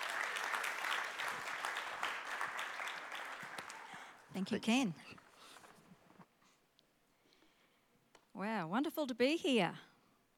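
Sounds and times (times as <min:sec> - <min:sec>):
church congregation applauding to welcome a preacher: 0:00.0 - 0:04.3
speech: 0:04.4 - 0:05.2, 0:08.4 - 0:09.9.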